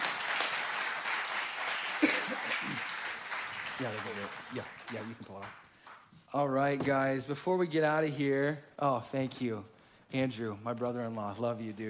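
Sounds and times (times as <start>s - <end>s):
audience applause: 0.0s - 5.6s
speech: 3.8s - 5.6s, 6.3s - 11.8s.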